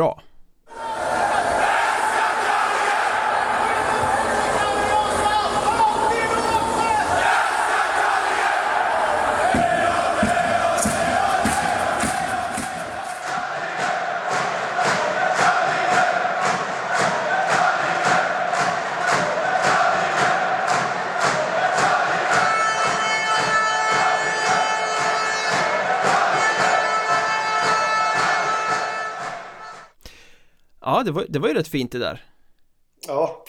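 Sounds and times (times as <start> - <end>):
speech: 0.0 - 0.2, 31.0 - 32.3
hockey fans chanting in an arena: 0.7 - 29.9
rhythmic claps or drum-like beats: 7.2 - 30.0.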